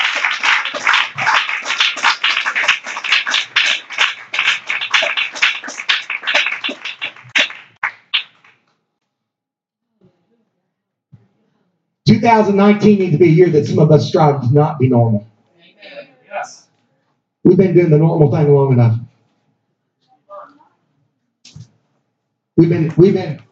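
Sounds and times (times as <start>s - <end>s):
audience clapping hands: 0.0s - 8.6s
speech: 12.2s - 15.3s, 17.4s - 19.0s, 22.6s - 23.4s.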